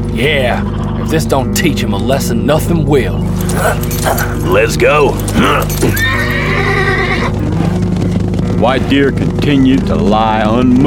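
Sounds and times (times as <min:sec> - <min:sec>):
speech: 0:00.2 - 0:06.0, 0:08.6 - 0:10.8
horse hoofbeats riding away: 0:03.3 - 0:07.3.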